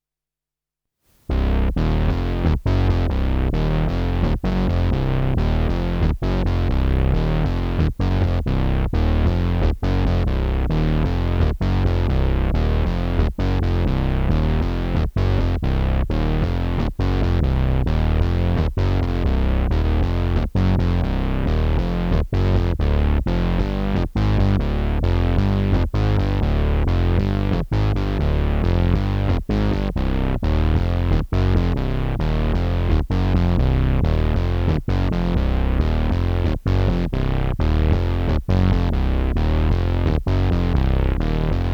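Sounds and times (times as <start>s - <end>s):
CS synth bass: 1.3s - 41.7s.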